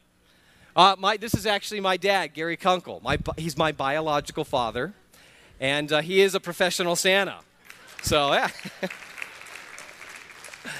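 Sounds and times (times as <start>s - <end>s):
speech: 0.8s - 5.0s, 5.6s - 9.0s
audience applause: 7.7s - 10.7s.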